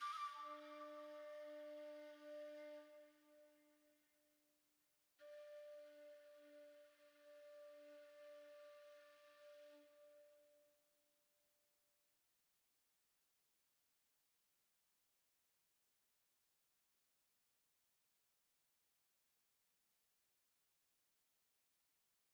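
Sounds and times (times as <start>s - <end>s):
flute: 0.0s - 4.0s, 5.2s - 10.8s.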